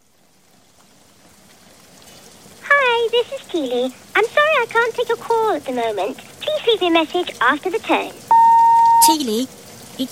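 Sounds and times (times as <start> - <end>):
rain falling: 0.0 - 10.0
speech: 3.5 - 8.2, 9.0 - 10.0.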